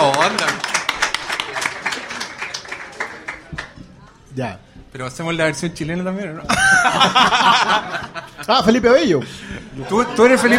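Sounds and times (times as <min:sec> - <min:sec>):
small group clapping: 0:00.0 - 0:04.2
speech: 0:04.4 - 0:10.5
laughter: 0:06.5 - 0:10.5.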